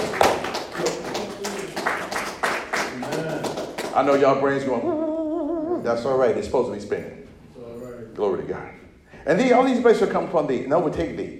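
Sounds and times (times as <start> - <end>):
round of applause: 0.0 - 4.3
speech: 4.0 - 5.1, 5.8 - 7.2, 8.2 - 11.3.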